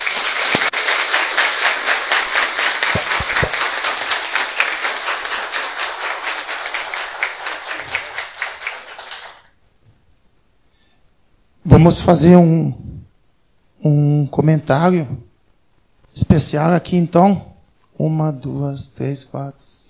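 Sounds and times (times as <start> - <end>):
audience applause: 0.0 - 9.5
speech: 11.8 - 12.8, 13.8 - 15.2, 16.2 - 19.8.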